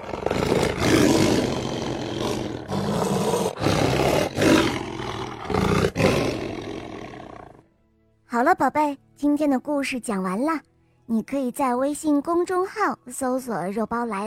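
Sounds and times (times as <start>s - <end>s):
lion roaring: 0.0s - 7.6s
speech: 8.4s - 14.2s.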